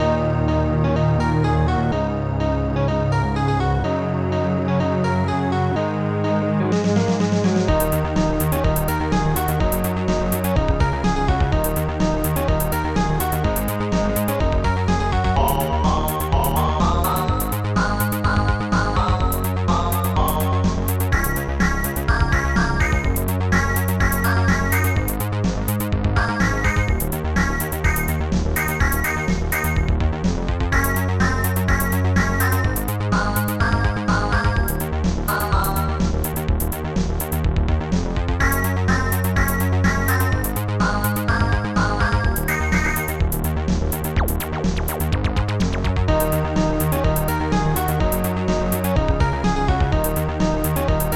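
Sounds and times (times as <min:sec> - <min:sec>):
tune: 0:00.0 - 0:37.6, 0:38.2 - 0:51.1.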